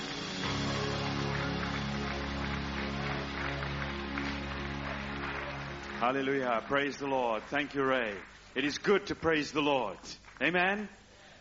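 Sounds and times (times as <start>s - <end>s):
loud music with a deep droning bass: 0.0s - 6.4s
audience hand clapping: 0.0s - 11.1s
speech: 6.0s - 11.3s.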